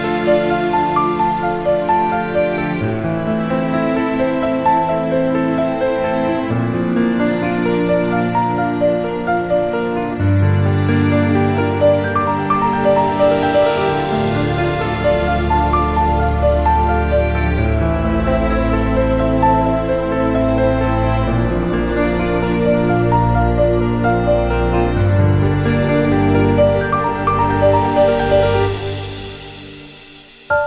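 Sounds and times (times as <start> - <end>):
sad violin: 0.0 - 30.5.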